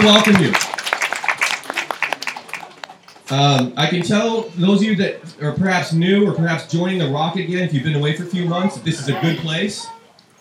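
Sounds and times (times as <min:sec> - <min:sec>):
speech: 0:00.0 - 0:00.7, 0:03.3 - 0:10.0
applause for newcomers at a church picnic: 0:00.0 - 0:04.1.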